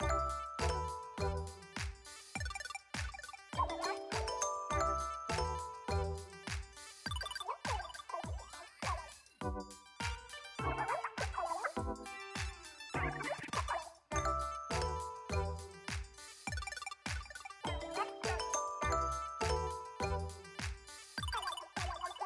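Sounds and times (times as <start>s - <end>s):
background music for a gear shop: 0.0s - 16.7s, 17.4s - 22.2s.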